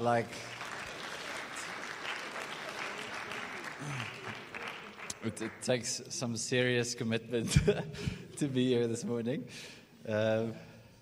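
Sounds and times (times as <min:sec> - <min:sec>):
speech: 0:00.0 - 0:00.6, 0:03.8 - 0:04.5, 0:05.2 - 0:10.7
audience applause: 0:00.0 - 0:05.9.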